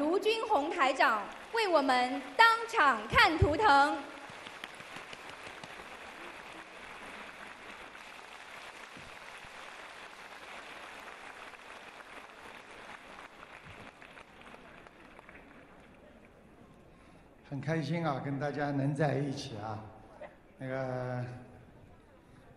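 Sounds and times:
speech: 0.2s - 4.2s, 17.5s - 20.0s, 20.6s - 21.5s
large audience applause: 0.3s - 16.4s.

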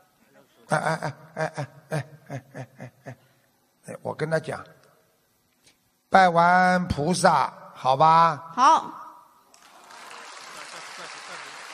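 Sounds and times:
laughter: 0.7s - 3.2s, 10.4s - 11.7s
speech: 0.7s - 3.2s, 4.0s - 4.8s, 6.1s - 9.0s
audience applause: 9.6s - 11.7s.

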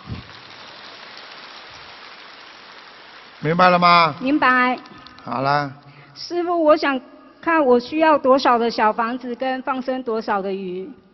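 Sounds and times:
crowd applause: 0.0s - 4.3s
speech: 3.4s - 11.0s.

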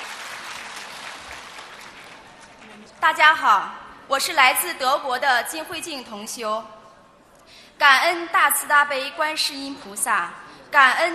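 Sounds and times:
audience applause at a Buddhist gathering: 0.0s - 2.9s
speech: 2.8s - 6.8s, 7.8s - 11.1s.

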